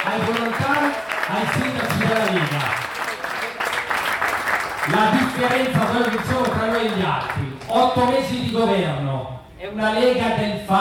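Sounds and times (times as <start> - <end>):
speech: 0.0 - 3.0, 4.9 - 10.7
crowd applause: 0.0 - 7.7.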